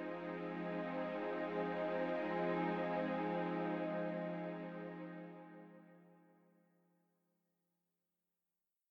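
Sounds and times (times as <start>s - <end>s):
ambient music: 0.0s - 6.1s.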